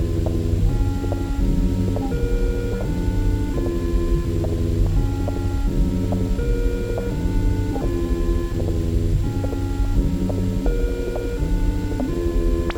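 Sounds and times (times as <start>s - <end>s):
noise suite: 0.0s - 12.7s.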